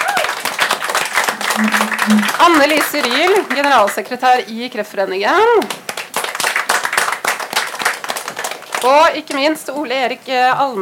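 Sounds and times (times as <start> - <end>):
audience applause: 0.0 - 4.1, 5.6 - 9.2
speech: 1.6 - 5.8, 8.8 - 10.7.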